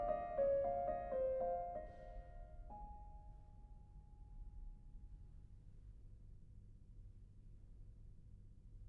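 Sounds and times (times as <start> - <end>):
mazurka in A flat major on piano: 0.0 - 3.3.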